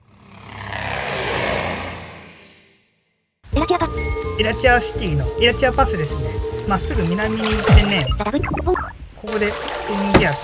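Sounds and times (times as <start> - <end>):
helicopter sound effect engine roar: 0.0 - 1.9
speech: 4.4 - 10.4.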